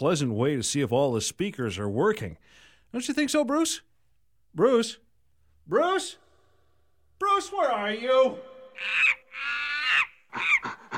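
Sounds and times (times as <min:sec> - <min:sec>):
speech: 0:00.0 - 0:03.9, 0:04.5 - 0:05.0, 0:05.6 - 0:06.2, 0:07.2 - 0:09.5
monkeys shrieking and chattering: 0:08.8 - 0:10.9.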